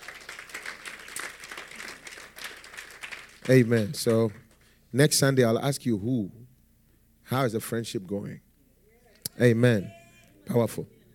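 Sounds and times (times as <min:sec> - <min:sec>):
audience clapping: 0:00.0 - 0:04.7
speech: 0:03.4 - 0:06.4, 0:07.3 - 0:08.4, 0:09.4 - 0:11.0.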